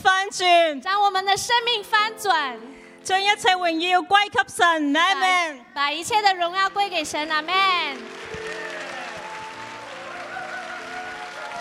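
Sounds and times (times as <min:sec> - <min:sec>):
speech: 0:00.3 - 0:08.3
applause: 0:07.0 - 0:11.5.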